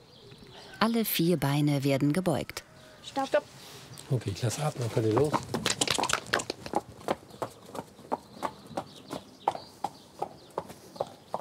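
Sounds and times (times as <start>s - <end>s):
speech: 0.8s - 5.7s
horse trotting hooves: 4.2s - 11.3s.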